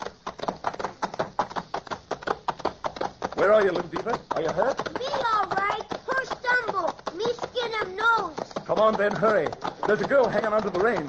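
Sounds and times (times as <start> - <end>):
horses galloping in a radio drama: 0.0 - 11.0
speech: 3.4 - 5.7, 7.7 - 11.0.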